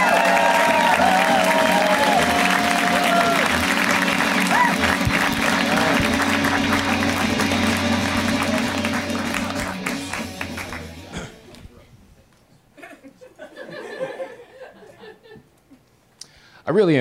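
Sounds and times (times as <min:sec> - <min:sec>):
audience clapping: 0:00.0 - 0:11.6
laughter: 0:12.8 - 0:15.8.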